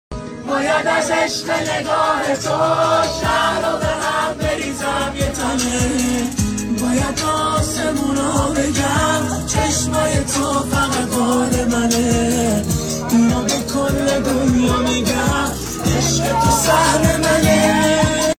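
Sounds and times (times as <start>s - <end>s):
guitar: 0.1s - 18.3s.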